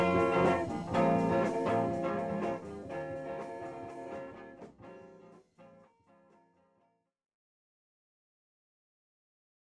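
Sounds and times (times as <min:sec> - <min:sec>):
fusion music: 0:00.0 - 0:05.8.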